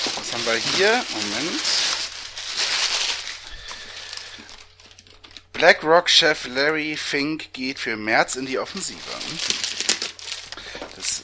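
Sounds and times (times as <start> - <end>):
newspaper rustling: 0.0 - 5.5, 8.5 - 11.2
speech: 0.3 - 1.9, 5.6 - 9.6, 11.0 - 11.2.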